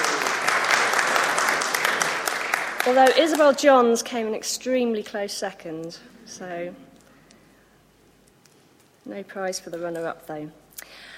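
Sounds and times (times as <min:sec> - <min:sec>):
audience applause for the winner of a competition: 0:00.0 - 0:03.6
speech: 0:02.9 - 0:06.9, 0:09.0 - 0:11.0.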